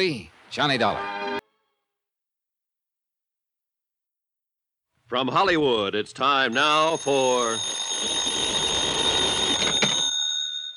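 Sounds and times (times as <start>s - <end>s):
speech: 0.0s - 1.1s, 5.1s - 8.4s
old-style telephone bell ringing: 6.5s - 10.7s.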